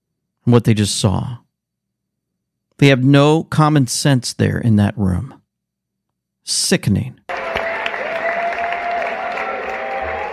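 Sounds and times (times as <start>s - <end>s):
speech: 0.4s - 1.4s, 2.8s - 5.4s, 6.4s - 7.3s
excited audience cheering and applauding: 7.3s - 10.3s.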